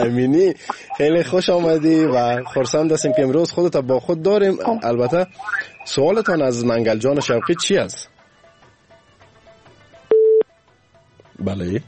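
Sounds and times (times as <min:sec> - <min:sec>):
phone line busy tone after a call cuts off: 0:00.0 - 0:01.4, 0:02.3 - 0:03.4, 0:04.6 - 0:05.3, 0:10.1 - 0:10.4
speech: 0:00.0 - 0:08.1, 0:11.4 - 0:11.8.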